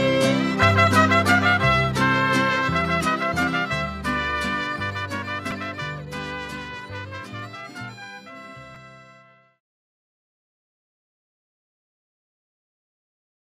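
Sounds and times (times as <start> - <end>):
Mexican folk dance music: 0.0 - 9.4.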